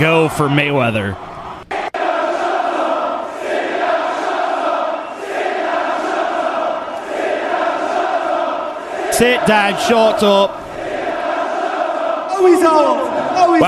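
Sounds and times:
speech: 0:00.0 - 0:01.3, 0:09.2 - 0:10.6, 0:12.4 - 0:13.6
hostile crowd jeering at boxing event in London: 0:00.0 - 0:13.6.

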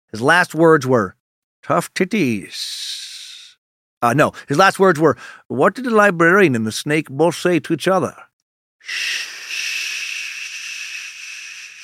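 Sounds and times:
speech: 0:00.1 - 0:03.1, 0:04.0 - 0:09.4
person making a long shushing hiss: 0:02.5 - 0:03.6, 0:08.8 - 0:11.8.

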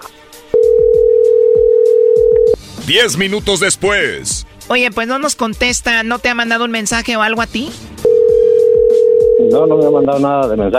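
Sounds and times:
telephone ringing tone after redialing: 0:00.6 - 0:02.6, 0:08.0 - 0:09.7
speech: 0:02.9 - 0:07.9, 0:09.4 - 0:10.7.

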